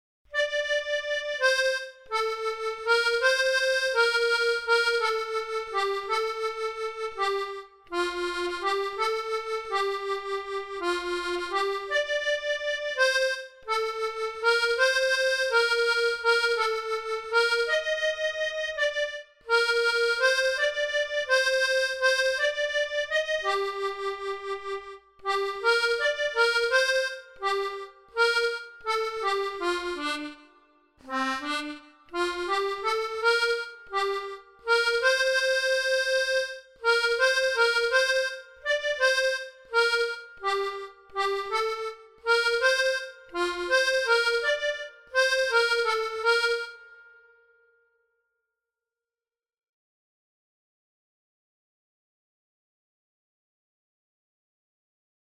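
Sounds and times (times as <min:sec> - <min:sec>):
accordion: 0:00.3 - 0:47.7.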